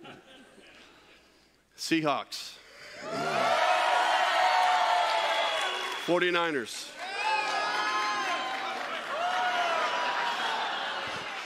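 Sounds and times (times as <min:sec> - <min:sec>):
speech: 0:01.8 - 0:03.5, 0:06.1 - 0:07.0
audience booing: 0:03.0 - 0:05.6, 0:07.0 - 0:11.4.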